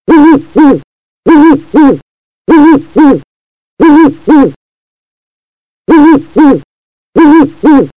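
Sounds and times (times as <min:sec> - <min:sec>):
owl: 0:00.1 - 0:03.2, 0:03.8 - 0:04.6, 0:05.9 - 0:07.9.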